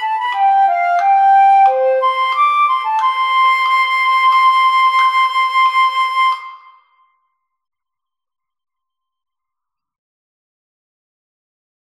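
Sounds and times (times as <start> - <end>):
flute: 0.0 - 7.5.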